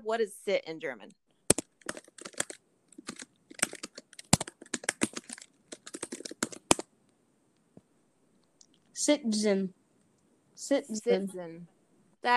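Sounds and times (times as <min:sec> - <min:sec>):
speech: 0:00.1 - 0:01.2, 0:09.0 - 0:09.8, 0:10.6 - 0:12.3
typing on a computer keyboard: 0:01.5 - 0:06.9.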